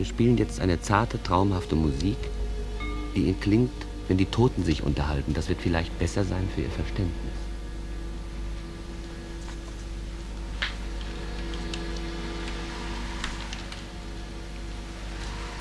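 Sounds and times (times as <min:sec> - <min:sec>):
speech: 0:00.0 - 0:02.4, 0:03.1 - 0:07.4
low rumbling hum: 0:00.0 - 0:15.5
steady rain pattering on a surface: 0:09.0 - 0:14.7.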